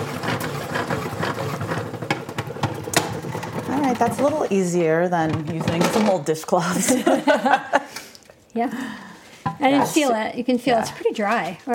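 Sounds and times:
salad spinner whirling wet salad greens dry: 0.0s - 4.4s
speech: 3.9s - 7.8s, 8.5s - 9.0s, 9.6s - 11.7s
laughter: 6.6s - 7.9s.

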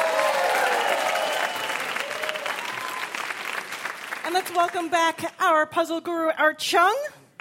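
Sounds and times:
quiz show audience applauding a contestant: 0.0s - 5.0s
speech: 4.4s - 7.2s.

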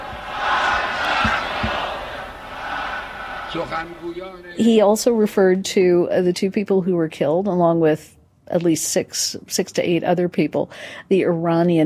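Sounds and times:
crowd cheering and chanting: 0.0s - 4.4s
speech: 3.5s - 11.8s.

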